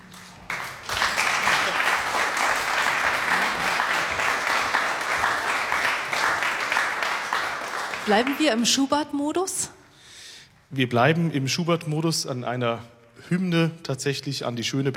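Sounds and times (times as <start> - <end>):
concert audience at a classical recital clapping for an encore: 0.0 - 8.9
speech: 8.1 - 9.8, 10.7 - 14.9.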